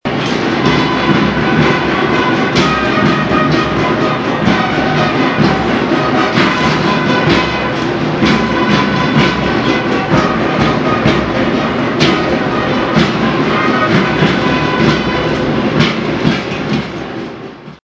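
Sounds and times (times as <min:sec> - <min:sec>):
marching band: 0:00.0 - 0:17.8.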